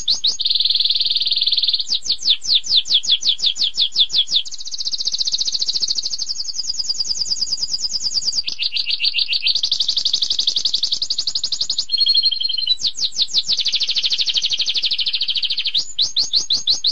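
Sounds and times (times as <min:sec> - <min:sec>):
high-pitched rapid buzzy bird trills: 0:00.0 - 0:06.4, 0:07.0 - 0:16.8.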